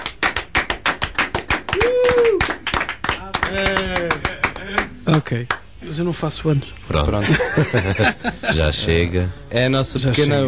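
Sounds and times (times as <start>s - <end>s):
round of applause in a studio: 0.0s - 5.6s
sustained vocal whoop: 1.7s - 2.5s
speech: 3.5s - 4.1s, 5.1s - 10.4s
laughter: 3.9s - 5.0s, 7.2s - 8.8s.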